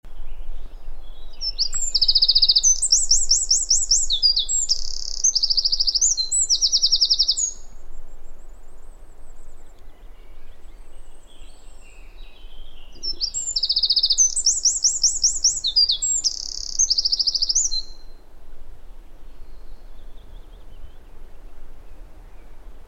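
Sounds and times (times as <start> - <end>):
Eurasian wren song: 0.1 - 22.8.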